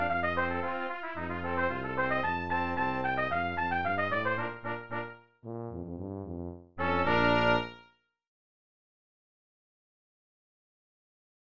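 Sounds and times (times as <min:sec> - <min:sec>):
clarinet polka: 0:00.0 - 0:05.3, 0:06.6 - 0:07.9.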